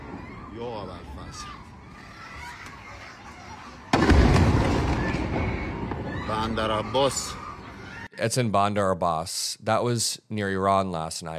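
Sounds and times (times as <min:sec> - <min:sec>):
speech: 0:00.6 - 0:01.7, 0:06.4 - 0:07.4, 0:08.2 - 0:11.3
explosions from airstrikes in recorded video: 0:03.9 - 0:06.6.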